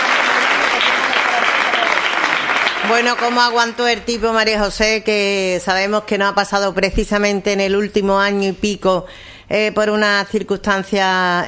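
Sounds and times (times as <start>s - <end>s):
audience clapping: 0.0s - 3.9s
speech: 2.9s - 11.4s.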